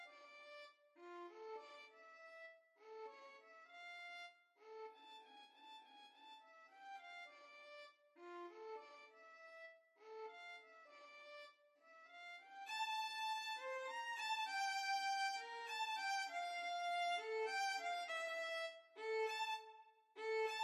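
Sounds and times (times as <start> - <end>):
violin duet: 12.7 - 20.6.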